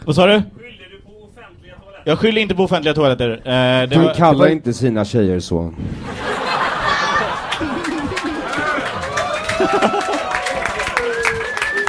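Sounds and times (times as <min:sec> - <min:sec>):
speech: 0:00.0 - 0:00.8, 0:02.0 - 0:06.3, 0:09.6 - 0:10.0
scattered laughter: 0:06.2 - 0:09.0
audience clapping: 0:07.1 - 0:11.8.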